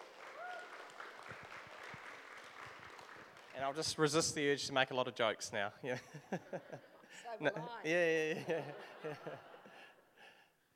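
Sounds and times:
audience applause: 0:00.0 - 0:04.2
speech: 0:03.6 - 0:09.5
laughter: 0:05.9 - 0:10.1.

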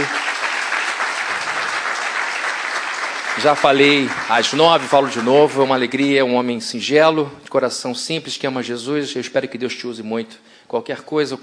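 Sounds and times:
audience applause: 0:00.0 - 0:06.0
speech: 0:03.4 - 0:11.4.

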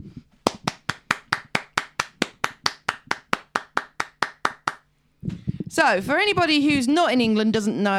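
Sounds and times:
hands clapping for the NHS: 0:00.5 - 0:04.8
speech: 0:05.2 - 0:07.9.

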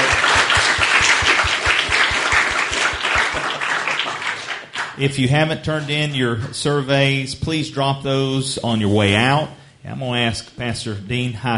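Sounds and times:
audience applause: 0:00.0 - 0:05.0
speech: 0:05.0 - 0:11.5.

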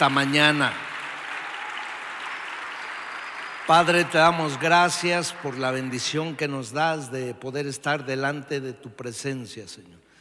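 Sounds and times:
speech: 0:00.0 - 0:00.8, 0:03.7 - 0:10.1
audience applause: 0:00.0 - 0:06.8.

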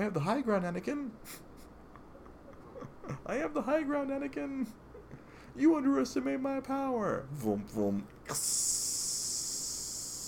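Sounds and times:
speech: 0:00.0 - 0:01.5, 0:03.0 - 0:04.8, 0:05.6 - 0:09.0
high-pitched sizzling hiss: 0:08.3 - 0:10.2.

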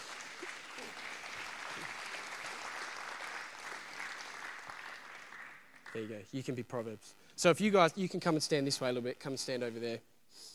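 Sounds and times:
audience round of applause: 0:00.0 - 0:06.0
speech: 0:05.9 - 0:10.5.

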